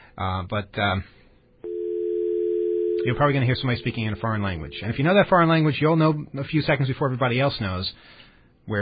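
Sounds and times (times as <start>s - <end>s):
speech: 0.2s - 1.2s, 3.0s - 8.8s
low-pitched telephone call tone: 1.6s - 5.1s.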